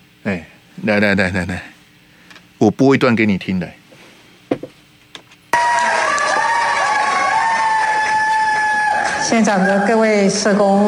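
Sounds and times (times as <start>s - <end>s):
speech: 0.2s - 1.7s, 2.6s - 3.8s, 9.3s - 10.8s
scattered claps and shouts: 5.6s - 9.9s
crowd screaming and cheering: 5.6s - 10.2s.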